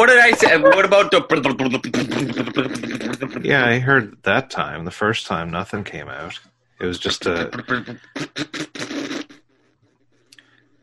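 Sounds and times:
laughter: 0.0 - 8.2
speech: 0.0 - 9.3
voice imitating a wet fart with the lips: 1.4 - 4.2, 7.1 - 9.4.

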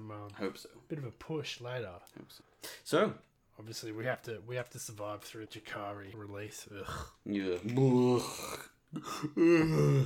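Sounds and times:
speech: 0.1 - 10.0
person yawning: 7.8 - 10.0.

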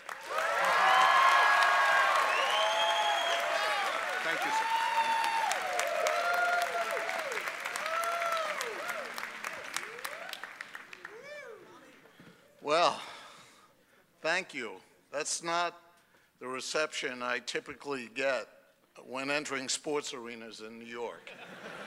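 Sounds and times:
crowd applause at a Yeshiva University graduation ceremony: 0.0 - 11.7
cheers and whoops: 0.2 - 11.7
speech: 14.4 - 15.8, 16.4 - 21.6.

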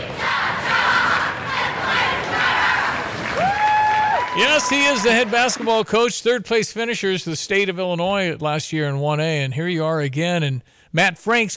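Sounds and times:
children shouting a team cheer: 0.0 - 5.4
speech: 4.4 - 11.5.

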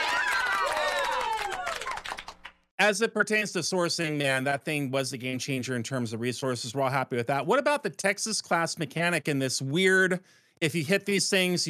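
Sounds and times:
cheers and whoops: 0.0 - 2.2
crowd applause sound effect from soundboard: 0.0 - 2.5
speech: 2.8 - 11.6.

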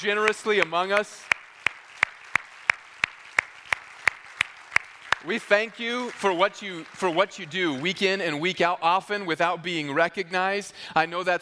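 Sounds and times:
speech: 0.0 - 1.4, 5.2 - 11.3
audience applause: 0.2 - 7.9.

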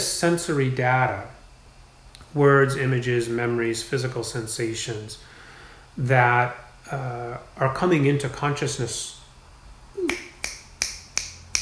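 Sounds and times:
speech: 0.2 - 1.4, 2.3 - 5.3, 6.0 - 9.2
finger snaps: 10.0 - 11.6.

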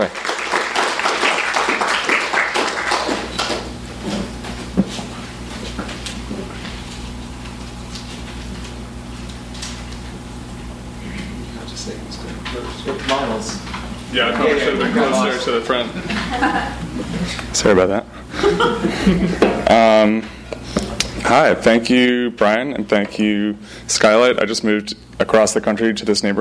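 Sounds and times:
audience applause: 0.0 - 3.7
steady low hum: 0.0 - 26.3
laughter: 14.5 - 17.5, 18.2 - 19.7
speech: 14.9 - 16.8, 17.6 - 20.4, 21.3 - 26.3.

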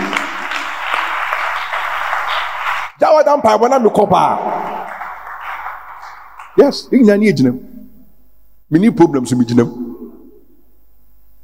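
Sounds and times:
audience clapping hands: 0.0 - 3.0, 4.1 - 7.0
speech: 3.0 - 4.6, 6.6 - 7.7, 8.7 - 9.8.

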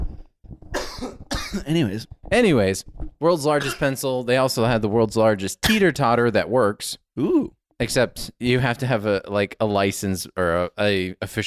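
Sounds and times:
person coughing after choking on a drink: 0.8 - 1.7, 3.6 - 4.0
speech: 1.0 - 11.4.

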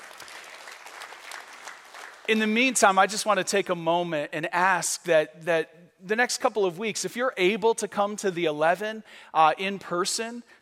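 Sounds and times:
audience applause: 0.0 - 2.4
speech: 2.3 - 10.6.

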